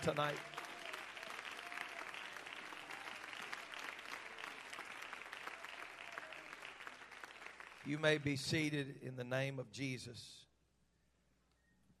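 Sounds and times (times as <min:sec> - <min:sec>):
speech: 0:00.0 - 0:00.6, 0:07.8 - 0:10.5
audience clapping: 0:00.0 - 0:08.6.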